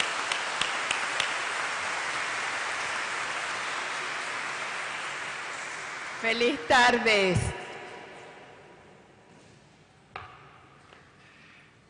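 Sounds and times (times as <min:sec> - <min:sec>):
applause: 0:00.0 - 0:08.3
speech: 0:06.2 - 0:07.5.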